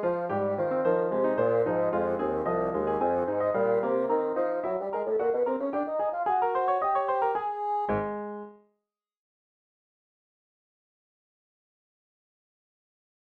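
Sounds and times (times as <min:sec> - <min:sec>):
bassoon: 0:00.0 - 0:08.5.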